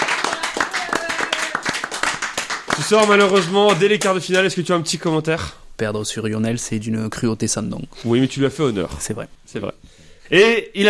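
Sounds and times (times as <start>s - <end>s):
audience clapping for a quiz contestant: 0.0s - 4.8s
speech: 2.8s - 10.8s.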